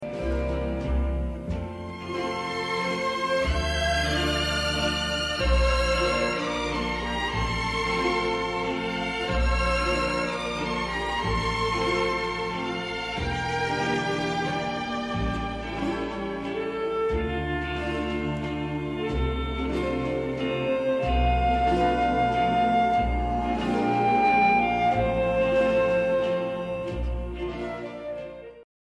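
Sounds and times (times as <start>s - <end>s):
waltz music: 0.0s - 28.6s.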